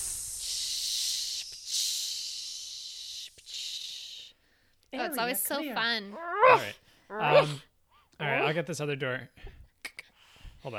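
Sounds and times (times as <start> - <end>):
hissing decontamination spray: 0.0 - 4.2
speech: 4.9 - 9.6.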